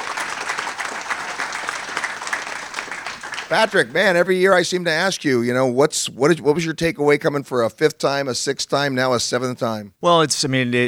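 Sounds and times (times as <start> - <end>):
audience applause: 0.0 - 4.3
speech: 3.5 - 10.8.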